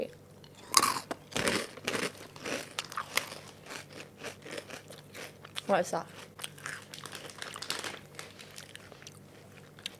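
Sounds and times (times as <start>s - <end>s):
sweet Indonesian peanut snacks being crunched: 0.8s - 5.7s, 6.4s - 9.2s
snack packet crinkling: 0.8s - 9.9s
speech: 5.7s - 6.3s.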